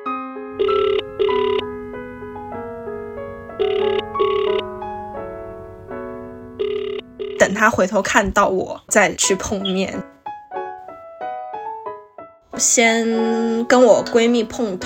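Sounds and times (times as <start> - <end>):
speech: 0.6 - 1.1, 7.6 - 10.2, 12.6 - 14.8
electronic phone ringtone on an outgoing call: 0.6 - 1.7, 3.6 - 4.8, 6.6 - 7.5.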